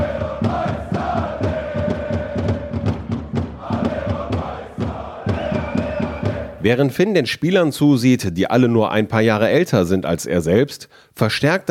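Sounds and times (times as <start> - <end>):
football crowd cheering: 0.0 - 6.7
speech: 6.6 - 11.6.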